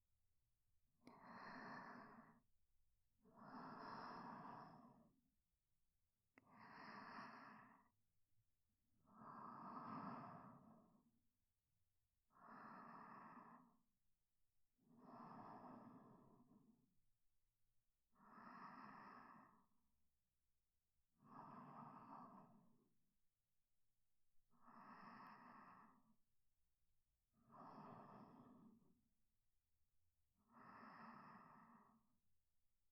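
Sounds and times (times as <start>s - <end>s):
sleep breathing: 1.0s - 2.4s, 3.4s - 5.1s, 6.5s - 7.9s, 9.1s - 11.0s, 12.4s - 13.7s, 15.0s - 16.7s, 18.2s - 19.7s, 21.2s - 22.7s, 24.6s - 26.1s, 27.5s - 28.8s, 30.5s - 32.1s.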